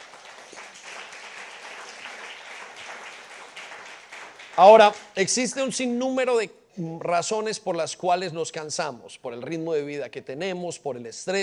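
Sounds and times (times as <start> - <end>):
audience applause: 0.0 - 5.2
speech: 4.6 - 11.4.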